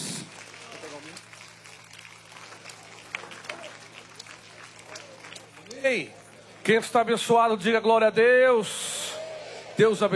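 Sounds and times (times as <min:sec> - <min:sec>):
audience clapping: 0:00.0 - 0:06.7
speech: 0:05.8 - 0:08.9, 0:09.8 - 0:10.1.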